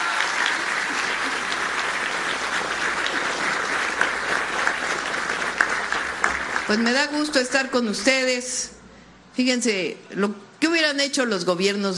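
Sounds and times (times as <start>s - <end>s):
audience applause: 0.0s - 7.2s
speech: 6.7s - 8.8s, 9.4s - 11.9s.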